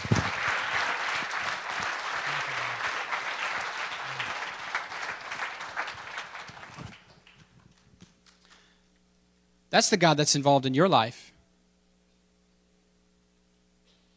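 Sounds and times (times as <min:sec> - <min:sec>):
audience clapping: 0:00.0 - 0:08.8
speech: 0:09.8 - 0:11.3.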